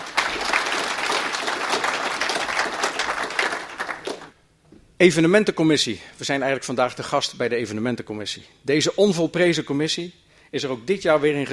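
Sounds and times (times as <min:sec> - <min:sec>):
applause: 0:00.0 - 0:04.4
speech: 0:05.0 - 0:11.5.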